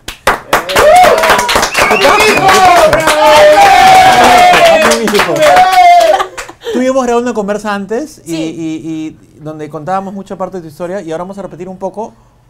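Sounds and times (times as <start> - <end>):
audience applause: 0.2 - 6.5
speech: 2.0 - 3.6, 7.0 - 12.4.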